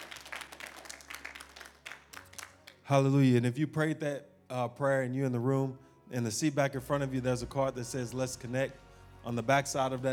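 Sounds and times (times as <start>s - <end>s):
audience hand clapping: 0.0s - 2.9s
speech: 2.9s - 10.1s.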